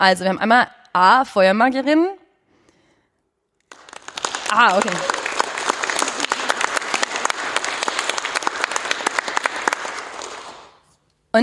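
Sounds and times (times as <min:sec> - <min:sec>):
speech: 0:00.0 - 0:02.2, 0:04.5 - 0:05.2
audience clapping to vote: 0:03.6 - 0:10.8.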